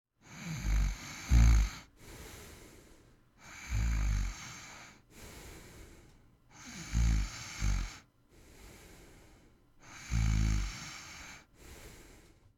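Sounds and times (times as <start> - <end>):
snoring: 0.2 - 2.8, 3.4 - 5.7, 6.5 - 8.1, 9.8 - 12.2.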